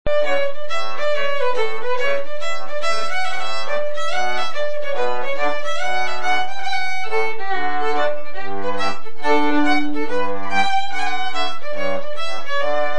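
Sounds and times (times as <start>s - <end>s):
hornpipe tune: 0.1s - 12.9s.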